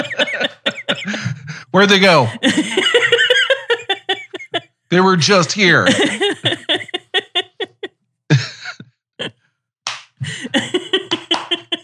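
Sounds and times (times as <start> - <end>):
laughter: 0.0 - 8.8, 10.2 - 11.8
speech: 1.8 - 2.6, 4.9 - 6.2
hand clapping: 9.9 - 10.2, 11.0 - 11.8.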